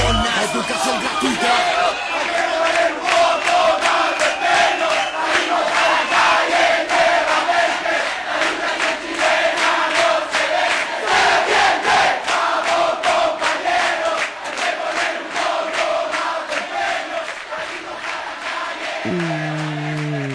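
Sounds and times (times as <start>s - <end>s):
brief tonal sound: 0.0s - 0.5s
student protest crowd chanting slogans: 1.4s - 19.1s
rhythmic clapping or drumming: 2.3s - 20.3s.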